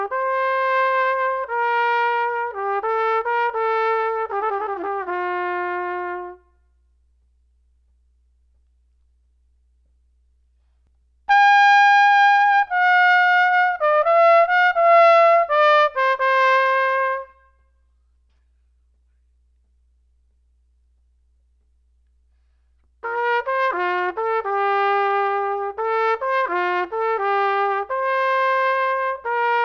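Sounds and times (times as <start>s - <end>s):
trumpet solo: 0.0s - 6.6s, 11.3s - 17.8s, 23.0s - 29.6s.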